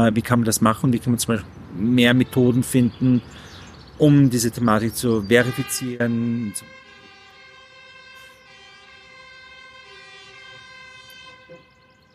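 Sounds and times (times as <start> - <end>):
speech: 0.0 - 6.8
fire engine siren: 5.4 - 12.1.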